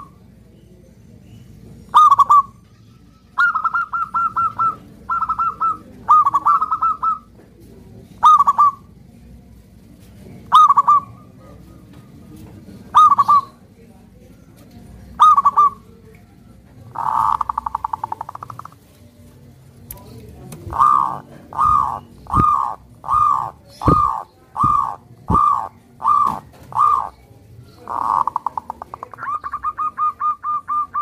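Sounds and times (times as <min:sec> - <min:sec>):
zebra dove song: 0:01.9 - 0:02.5, 0:03.4 - 0:07.4, 0:08.2 - 0:08.9, 0:10.5 - 0:11.8, 0:12.8 - 0:13.6, 0:15.2 - 0:15.9, 0:16.9 - 0:18.8, 0:20.6 - 0:27.2, 0:27.8 - 0:31.0.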